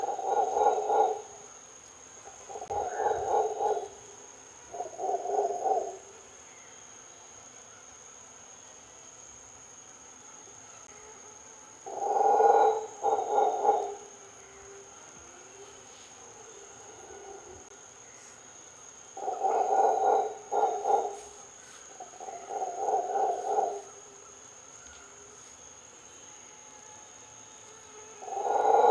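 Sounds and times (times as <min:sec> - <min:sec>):
mantled howler Alouatta palliata howling: 0:00.0 - 0:01.3, 0:02.5 - 0:06.1, 0:11.8 - 0:14.8, 0:19.2 - 0:21.4, 0:22.0 - 0:24.2, 0:28.0 - 0:28.8.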